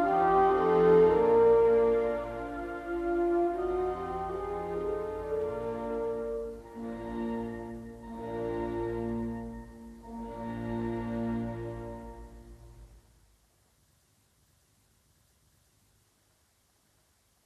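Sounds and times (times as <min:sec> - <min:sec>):
horn concerto in E flat: 0:00.0 - 0:13.0.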